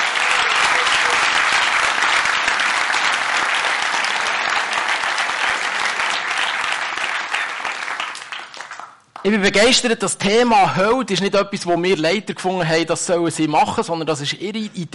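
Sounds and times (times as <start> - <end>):
audience applause: 0.0 - 9.0
speech: 9.2 - 14.9.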